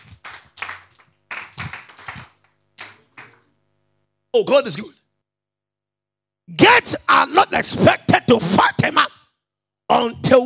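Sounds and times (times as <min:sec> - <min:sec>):
audience clapping hands: 0:00.0 - 0:03.6
speech: 0:04.4 - 0:05.0, 0:06.8 - 0:09.1, 0:09.9 - 0:10.4.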